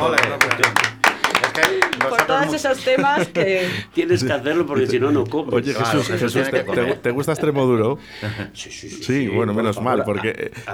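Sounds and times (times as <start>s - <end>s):
speech: 0.0s - 0.8s, 1.6s - 10.7s
applause: 0.0s - 2.8s
laughter: 0.0s - 10.7s.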